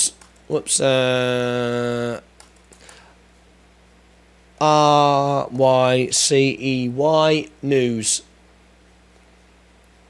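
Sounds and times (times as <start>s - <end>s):
speech: 0.0s - 2.3s, 4.6s - 8.3s
keystrokes on a computer keyboard typing a Google search for Rolls-Royce news: 0.1s - 0.5s, 2.4s - 3.0s.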